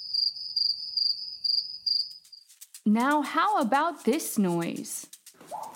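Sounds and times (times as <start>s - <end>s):
cricket chirping: 0.0s - 2.8s
speech: 2.8s - 5.1s.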